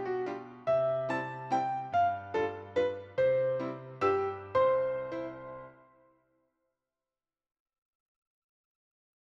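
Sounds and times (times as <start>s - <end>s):
waltz duet: 0.0s - 5.8s.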